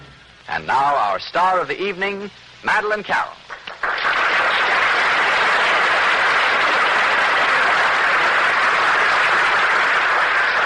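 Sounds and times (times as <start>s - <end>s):
speech: 0.6s - 3.5s
crowd applause: 3.5s - 10.6s.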